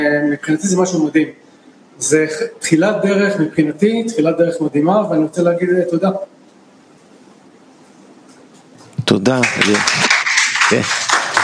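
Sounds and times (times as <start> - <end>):
speech: 0.0 - 1.4, 2.0 - 6.4, 9.1 - 10.1, 10.7 - 11.0
audience clapping: 9.0 - 11.4.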